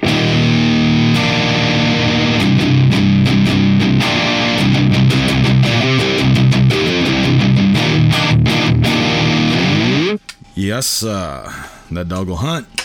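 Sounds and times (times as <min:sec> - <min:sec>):
electric guitar chugs through a distortion pedal: 0:00.0 - 0:10.2
speech: 0:10.8 - 0:12.8.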